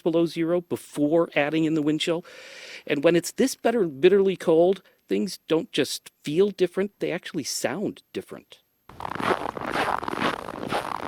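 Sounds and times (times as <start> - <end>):
speech: 0.0 - 8.6
footsteps squeaking and crunching on cold packed snow: 8.9 - 11.0.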